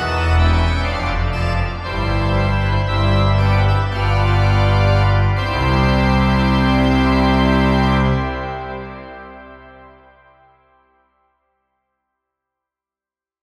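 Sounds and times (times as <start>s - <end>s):
wedding music on piano: 0.0s - 9.7s.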